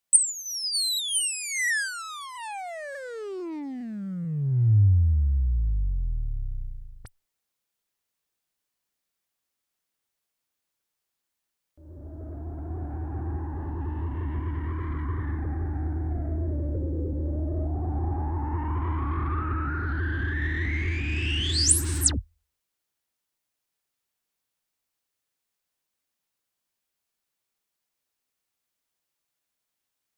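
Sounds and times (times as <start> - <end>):
special sound effects: 0.2 - 7.1, 12.0 - 22.2.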